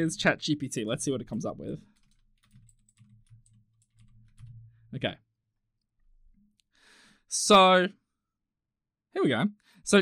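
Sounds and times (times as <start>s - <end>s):
speech: 0.0s - 1.9s, 4.9s - 5.2s, 7.3s - 8.0s, 9.2s - 10.0s
typing a question into ChatGPT on a computer keyboard: 1.8s - 4.7s.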